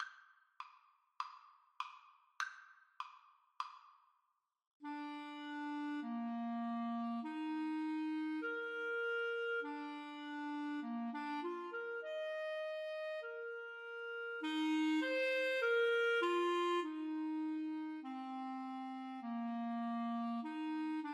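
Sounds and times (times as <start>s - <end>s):
clarinet duet: 4.8s - 21.1s.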